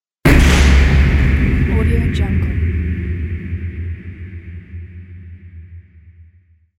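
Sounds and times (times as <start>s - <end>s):
incoming artillery fire: 0.3s - 5.2s.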